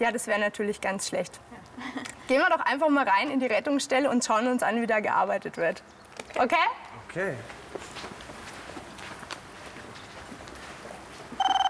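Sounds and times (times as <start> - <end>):
speech: 0.0 - 7.9
hum: 0.0 - 11.6
footsteps shuffling: 7.0 - 11.6
telephone ringing with incoming emergency call: 11.4 - 11.6.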